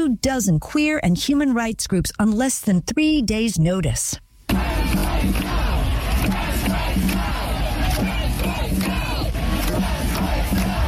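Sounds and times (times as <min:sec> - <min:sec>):
speech: 0:00.0 - 0:05.6
large protest crowd at emergency demonstration shouting and chanting: 0:04.5 - 0:10.8.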